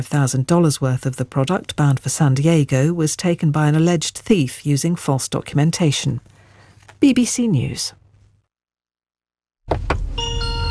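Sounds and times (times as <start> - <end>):
speech: 0.0 - 6.3, 7.0 - 8.0
welcome tune of a Chinese electric car: 10.1 - 10.6.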